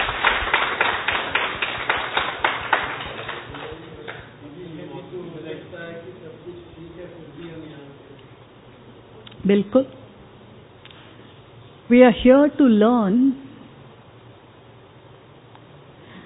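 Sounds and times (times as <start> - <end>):
audience clapping loudly: 0.0 - 4.4
speech: 9.5 - 10.0, 11.9 - 13.4.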